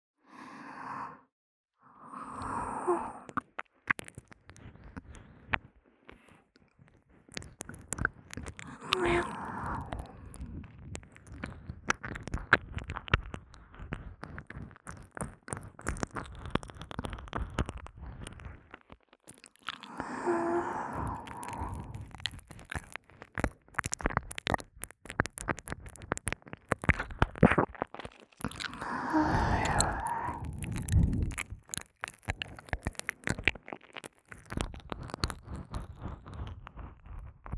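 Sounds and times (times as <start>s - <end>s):
continuous licking of the left ear: 3.3s - 37.5s.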